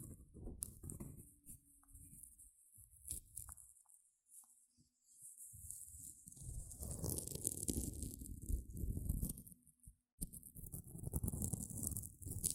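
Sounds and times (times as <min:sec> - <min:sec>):
gentle scratching: 0:00.0 - 0:09.6, 0:10.2 - 0:12.5.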